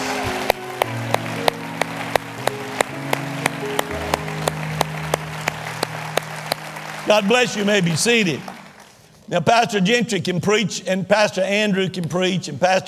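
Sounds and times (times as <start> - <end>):
organ or keyboard chords: 0.0 - 8.8
audience clapping: 0.0 - 9.1
speech: 7.1 - 8.6, 9.3 - 12.8.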